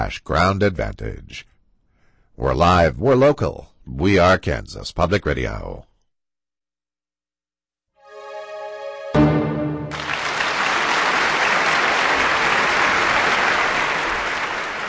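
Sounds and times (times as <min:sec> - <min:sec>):
speech: 0:00.0 - 0:01.5, 0:02.4 - 0:05.9
orchestral chord: 0:08.0 - 0:10.5
concert audience applause in a large hall: 0:09.2 - 0:14.8.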